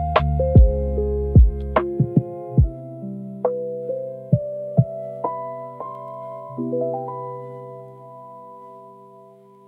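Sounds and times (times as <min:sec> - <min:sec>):
lo-fi study beats: 0:00.0 - 0:07.3.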